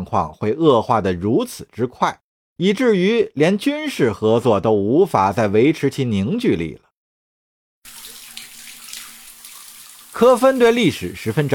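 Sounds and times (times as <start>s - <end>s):
speech: 0.0s - 6.8s, 10.2s - 11.5s
shower water rinsing off space-capsule filling fluid: 7.9s - 11.5s.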